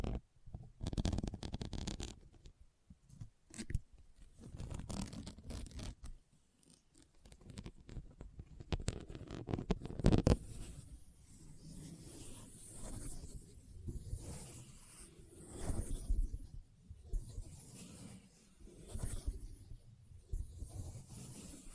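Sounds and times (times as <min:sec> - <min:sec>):
soft rubbing and rustling: 0:00.0 - 0:21.7
sharp crinkly taps and tearing bursts of Christmas trigger items: 0:04.6 - 0:10.4.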